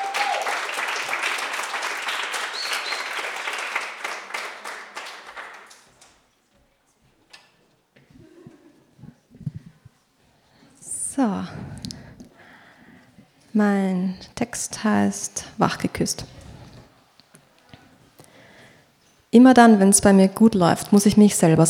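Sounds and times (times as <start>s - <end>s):
crowd applause: 0.0s - 6.0s
speech: 13.6s - 16.4s, 19.4s - 21.6s.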